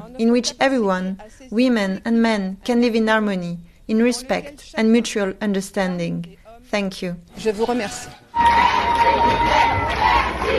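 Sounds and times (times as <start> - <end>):
speech: 0.2 - 10.5
crush of supporters and journalists shouting and cheering outside a courthouse: 8.3 - 10.5.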